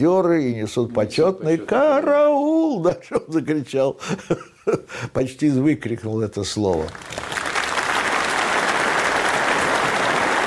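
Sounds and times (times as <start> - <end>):
speech: 0.0 - 7.3
audience applause in a hall: 6.9 - 10.4.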